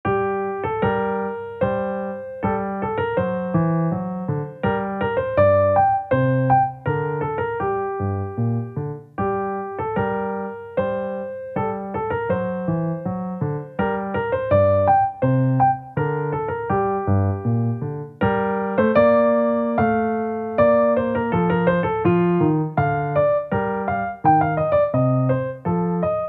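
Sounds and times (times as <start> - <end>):
piano polonaise in G minor: 0.0 - 26.2.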